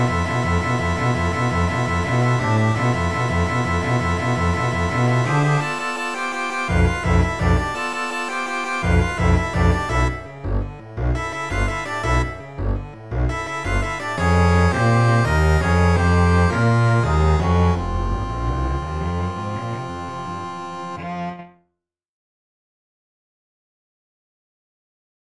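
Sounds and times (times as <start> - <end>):
MIDI double bass: 0.0 - 5.8, 6.6 - 7.8, 8.8 - 21.5
MIDI accordion: 0.0 - 21.6.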